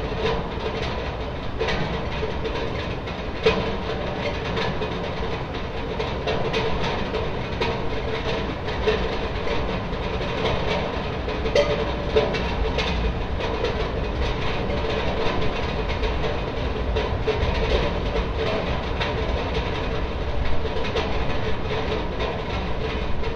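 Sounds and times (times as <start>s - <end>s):
rain tapping on a metal chimney: 0.0s - 23.3s.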